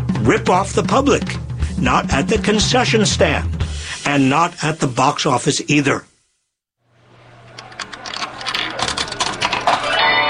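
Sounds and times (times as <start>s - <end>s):
speech: 0.3s - 6.1s
pinball machine mechanical clicks: 7.5s - 9.8s
quarters dropping into a Medieval Madness pinball machine: 7.6s - 10.2s.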